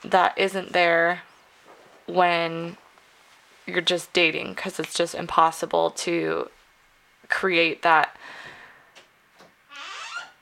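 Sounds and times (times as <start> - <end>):
speech: 0.0 - 1.3, 2.1 - 2.8, 3.7 - 6.6, 7.3 - 8.4
door creaking as cat plays with it: 9.4 - 10.3.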